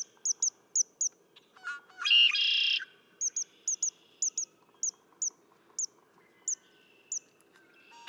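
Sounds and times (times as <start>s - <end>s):
bird chirping: 0.0s - 1.2s, 2.2s - 7.3s
red-winged blackbird song: 0.0s - 1.2s, 2.0s - 7.3s.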